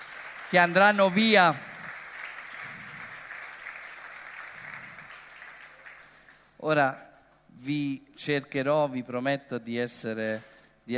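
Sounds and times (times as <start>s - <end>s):
audience applauding: 0.0s - 6.5s
speech: 0.5s - 1.7s, 6.6s - 10.9s.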